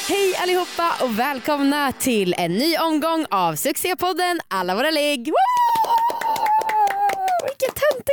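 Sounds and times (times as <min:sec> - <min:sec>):
speech: 0:00.1 - 0:05.7
cheering and clapping: 0:05.3 - 0:08.1.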